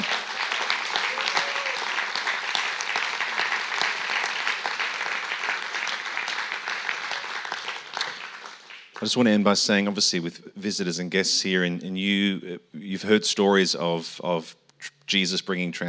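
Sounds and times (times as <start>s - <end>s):
audience applause: 0.0s - 9.4s
speech: 9.0s - 15.8s.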